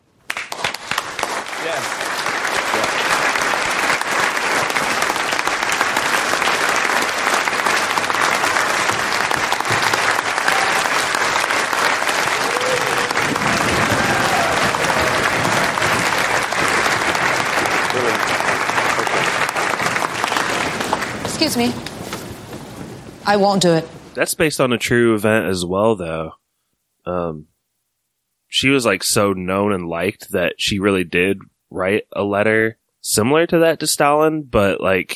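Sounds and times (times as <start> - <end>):
large audience applause after concerto: 0.3 - 23.0
speech: 1.7 - 2.0, 21.6 - 21.8, 23.3 - 26.4, 27.1 - 27.5, 28.5 - 35.1.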